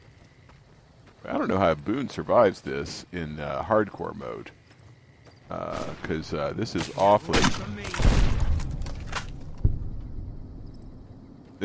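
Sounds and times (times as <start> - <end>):
speech: 1.3 - 4.6, 5.5 - 8.4
video game 40mm grenade explosions: 5.5 - 8.8
crackling debris: 5.6 - 10.2.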